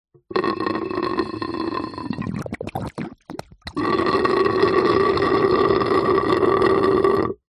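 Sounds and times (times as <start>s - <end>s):
light shallow water gurgling and bubbling in nature: 0.3s - 7.3s.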